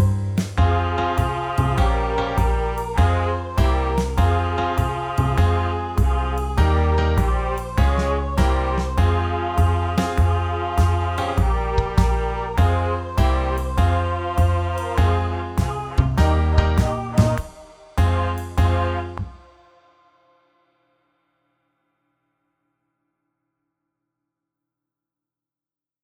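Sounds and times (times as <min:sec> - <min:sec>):
jazzy brass song in E-flat: 0:00.0 - 0:19.4.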